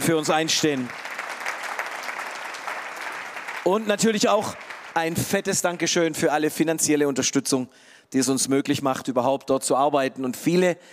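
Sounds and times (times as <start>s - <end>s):
speech: 0.0s - 1.1s, 3.6s - 10.9s
audience applause: 0.0s - 6.2s.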